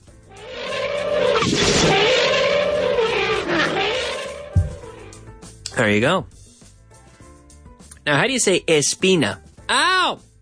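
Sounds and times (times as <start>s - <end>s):
elephant trumpeting: 0.3s - 5.2s
speech: 5.8s - 6.4s, 8.1s - 10.2s.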